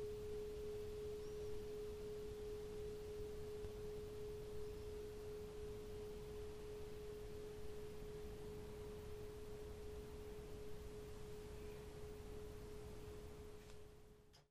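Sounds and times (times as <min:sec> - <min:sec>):
planet singing bowl tuned to the synodic moon: 0:00.0 - 0:13.6.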